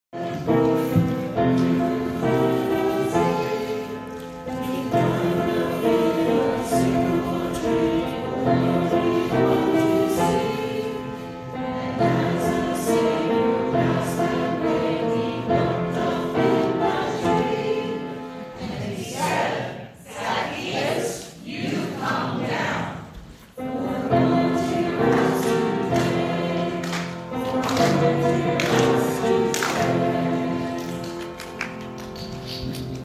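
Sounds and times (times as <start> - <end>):
gospel acclamation singing: 0.1 - 32.8.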